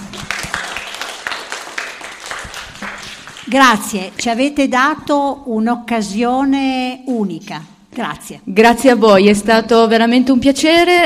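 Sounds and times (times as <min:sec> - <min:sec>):
children applauding: 0:00.0 - 0:03.5
speech: 0:03.5 - 0:11.0.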